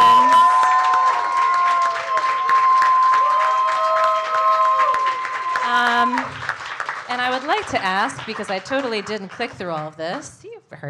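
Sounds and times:
audience applause: 0.0s - 9.9s
speech: 7.7s - 10.8s.

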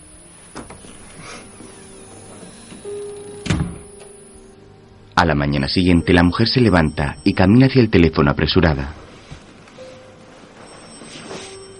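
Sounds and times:
door being closed: 0.4s - 4.2s
speech: 5.2s - 9.0s.

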